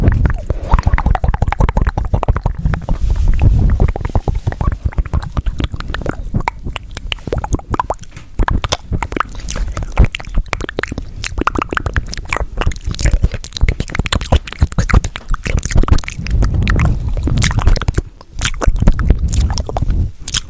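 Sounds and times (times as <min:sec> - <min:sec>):
low rumbling undertone: 0:00.0 - 0:07.1
fast aggressive mouth clicks, smacks and crunches: 0:00.0 - 0:20.4.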